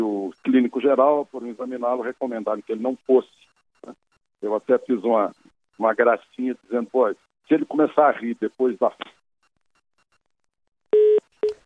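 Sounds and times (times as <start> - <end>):
speech: 0.0 - 9.2
dial tone beeps after a phone call drops: 10.9 - 11.6.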